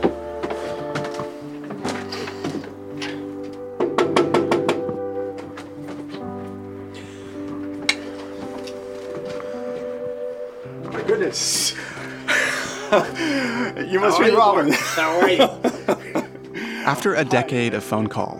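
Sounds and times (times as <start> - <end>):
sustained musical tones: 0.0 - 18.3
knocking on a front door: 3.8 - 4.9
speech: 11.3 - 11.9, 12.9 - 16.0, 16.9 - 18.3
laughter: 11.7 - 17.5.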